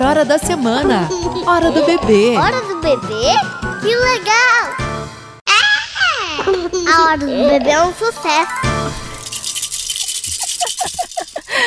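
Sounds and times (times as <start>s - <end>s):
speech: 0.1s - 4.8s, 6.4s - 8.6s
shaking a rattle: 9.0s - 11.6s.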